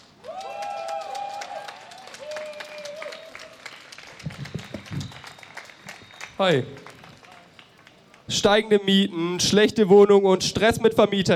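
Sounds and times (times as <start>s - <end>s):
crowd applause at a rally: 0.0s - 8.3s
speech: 6.4s - 6.8s, 8.3s - 11.3s.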